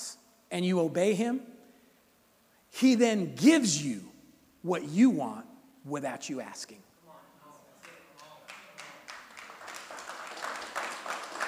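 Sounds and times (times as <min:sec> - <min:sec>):
speech: 0:00.5 - 0:01.6, 0:02.7 - 0:06.9
scattered clapping from audience: 0:07.8 - 0:11.4.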